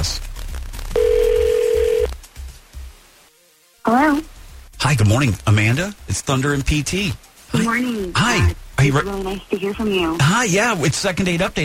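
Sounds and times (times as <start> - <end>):
phone line ringback tone: 1.0 - 2.1
speech: 4.9 - 11.6.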